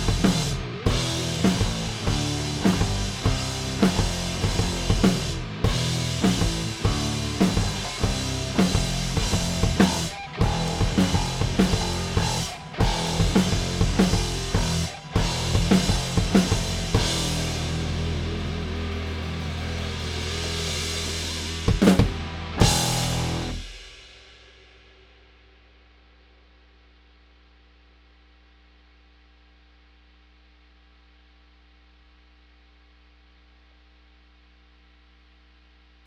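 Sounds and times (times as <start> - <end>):
drum stems: 0.0 - 27.2.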